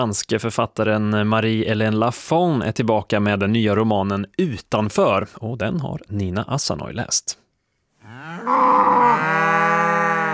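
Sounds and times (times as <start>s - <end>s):
speech: 0.0s - 7.4s, 8.2s - 9.2s
cow mooing: 8.0s - 10.3s.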